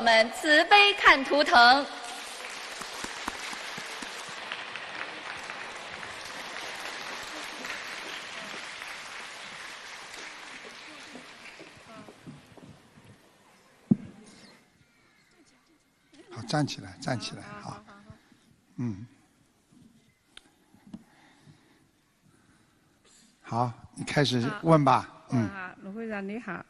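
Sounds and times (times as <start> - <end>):
speech: 0.1 - 2.0, 16.5 - 17.8, 18.8 - 19.1, 23.5 - 26.6
audience applause: 2.1 - 12.9.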